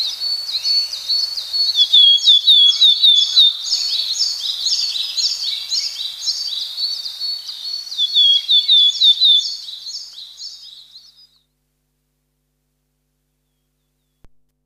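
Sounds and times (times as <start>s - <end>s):
willow tit calls: 0.0s - 11.4s.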